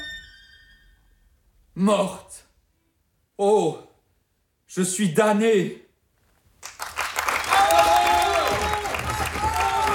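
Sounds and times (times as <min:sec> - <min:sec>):
speech: 0:01.8 - 0:02.4, 0:03.4 - 0:03.9, 0:04.7 - 0:05.8
theatre audience applause: 0:06.6 - 0:09.9
theatre audience cheering: 0:07.1 - 0:09.9.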